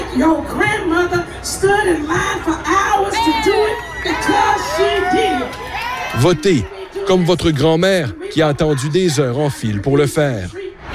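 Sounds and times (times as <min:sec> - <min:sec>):
speech: 0:00.2 - 0:02.7, 0:06.2 - 0:10.6
crowd cheering: 0:02.7 - 0:09.4.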